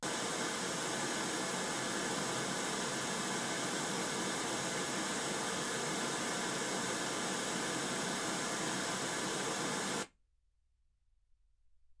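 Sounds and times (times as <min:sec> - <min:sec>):
white gaussian noise at 48kHz: 0:00.0 - 0:10.1.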